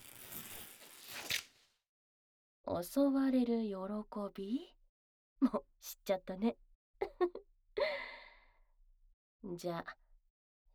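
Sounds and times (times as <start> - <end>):
scissors cutting into a sleeve cuff: 0.0 - 1.5
speech: 2.7 - 4.8, 5.4 - 6.6, 7.2 - 7.4, 9.4 - 10.0.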